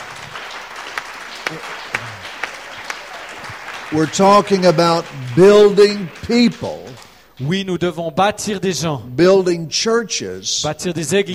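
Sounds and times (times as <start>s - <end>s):
audience applause: 0.0s - 7.4s
speech: 1.5s - 2.2s, 3.9s - 11.3s.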